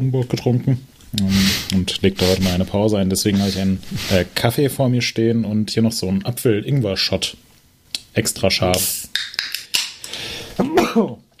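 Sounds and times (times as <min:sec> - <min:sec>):
speech: 0:00.0 - 0:07.5, 0:08.2 - 0:09.5, 0:10.6 - 0:11.2
person sneezing: 0:10.6 - 0:11.2.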